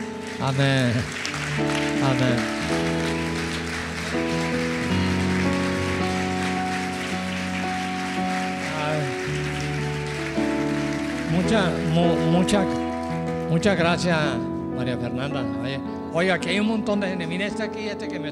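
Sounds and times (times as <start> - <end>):
applause: 0.0 - 14.1
speech: 0.4 - 3.4, 11.4 - 12.8, 13.5 - 18.3.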